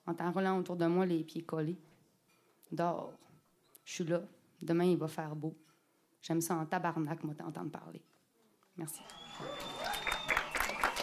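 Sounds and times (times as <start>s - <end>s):
speech: 0.1s - 1.9s, 2.7s - 3.3s, 3.9s - 8.1s, 8.8s - 10.0s
audience applause: 9.0s - 11.0s.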